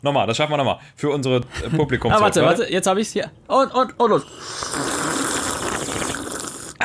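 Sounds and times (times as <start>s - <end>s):
speech: 0.0s - 5.0s
two people slurping coffee in sync: 3.7s - 6.8s.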